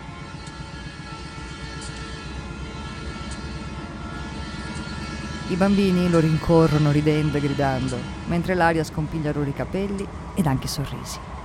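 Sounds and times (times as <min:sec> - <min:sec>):
freight train rumbling and chugging: 0:02.4 - 0:11.4
speech: 0:05.5 - 0:11.3.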